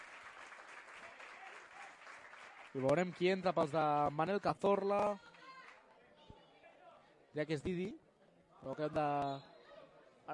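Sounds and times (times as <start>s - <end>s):
crowd ovation for a player leaving the court during a match: 0.0s - 4.1s
speech: 2.8s - 5.3s, 7.4s - 8.0s, 8.6s - 9.5s.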